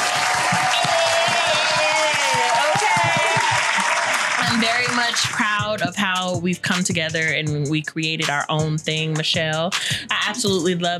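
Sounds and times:
crowd applause: 0.0 - 5.4
speech: 5.0 - 10.9.

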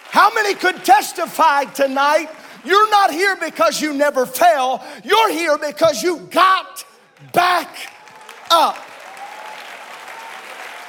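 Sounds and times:
audience clapping: 0.0 - 4.3, 7.0 - 10.8
speech: 0.2 - 7.9, 8.5 - 8.9.

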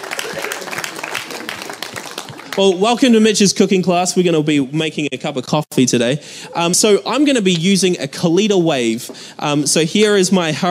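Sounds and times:
audience applause: 0.0 - 2.8
speech: 2.6 - 10.6.

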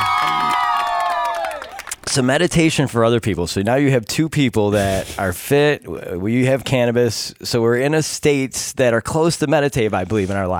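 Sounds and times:
cheering: 0.0 - 2.0
speech: 2.1 - 10.5.

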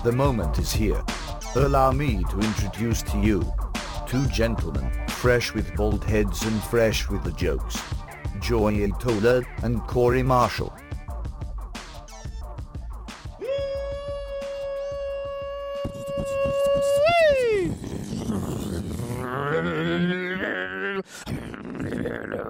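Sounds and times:
speech: 0.0 - 10.8
voice imitating a monster truck engine: 13.4 - 22.4.

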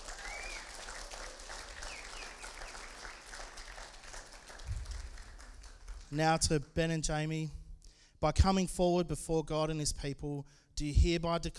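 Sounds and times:
audience applause: 0.0 - 6.2
speech: 6.1 - 7.6, 8.2 - 11.5.

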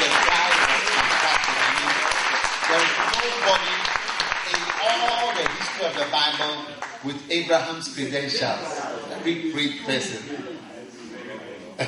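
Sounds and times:
audience clapping hands: 0.0 - 7.0
speech: 2.7 - 3.9, 4.5 - 10.7.

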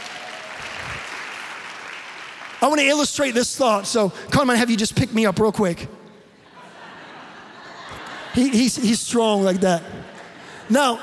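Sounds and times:
audience clapping: 0.0 - 3.4
speech: 2.6 - 6.0, 8.4 - 10.1, 10.7 - 11.0
laughter: 6.4 - 11.0.

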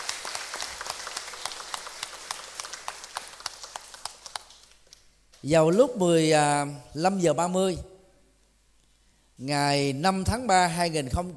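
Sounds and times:
audience applause: 0.0 - 4.8
speech: 5.4 - 7.9, 9.4 - 11.3.

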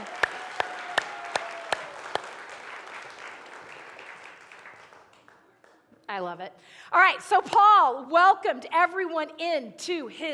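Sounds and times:
audience applauding a volunteer: 0.0 - 5.9
speech: 6.2 - 10.3.

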